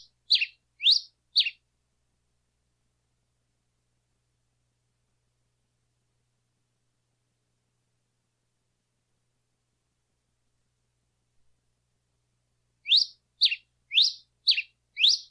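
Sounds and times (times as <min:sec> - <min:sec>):
singing: 0:00.0 - 0:01.6, 0:12.9 - 0:15.2.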